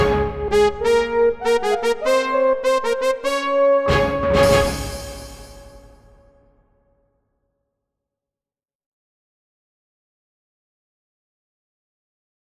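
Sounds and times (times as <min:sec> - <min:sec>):
orchestra hit: 0:00.0 - 0:06.6.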